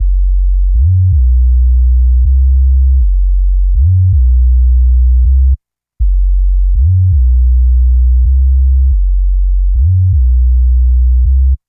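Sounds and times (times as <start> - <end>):
spooky sub bass: 0.0 - 11.6.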